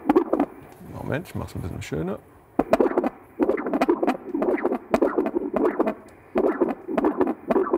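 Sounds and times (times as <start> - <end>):
static hiss: 0.0 - 7.7
speech: 1.1 - 2.3
dog heartbeat on Doppler ultrasound: 2.6 - 7.7.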